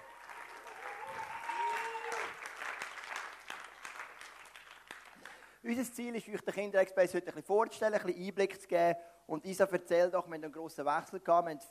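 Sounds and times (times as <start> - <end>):
audience applause: 0.0 - 5.6
speech: 5.6 - 11.7.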